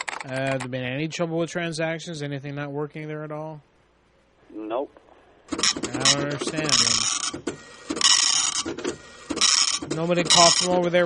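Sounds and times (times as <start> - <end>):
speech: 0.2 - 3.7, 4.5 - 7.8, 8.6 - 11.0
printer clicking and whirring: 5.5 - 11.0.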